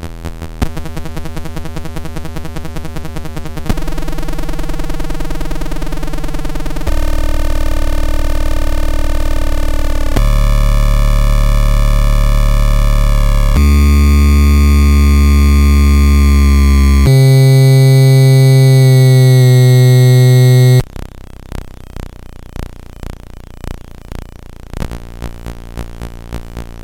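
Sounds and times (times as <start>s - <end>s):
circuit bent Gameboy noise: 3.7s - 20.9s
circuit bent Gameboy triangle wave tone: 10.2s - 20.8s.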